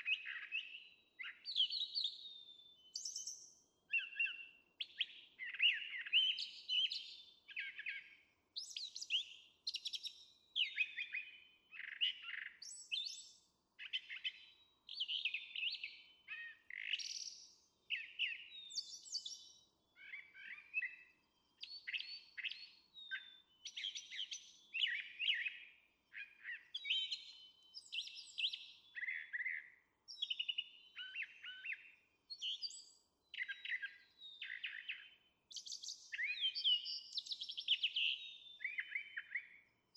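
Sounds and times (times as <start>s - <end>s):
Brown Thrasher singing varied phrases: 0.0s - 39.9s.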